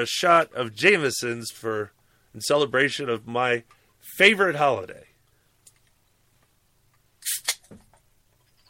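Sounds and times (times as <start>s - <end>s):
speech: 0.0s - 5.1s
can of Guinness beer opening: 7.2s - 7.8s.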